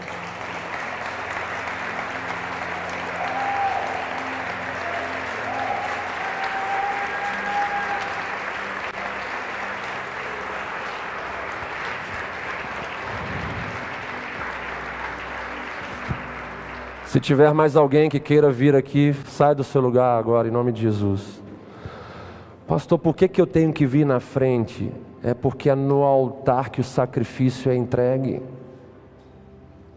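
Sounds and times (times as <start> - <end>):
church audience applauding: 0.0 - 17.8
speech: 17.2 - 21.4, 22.7 - 28.5.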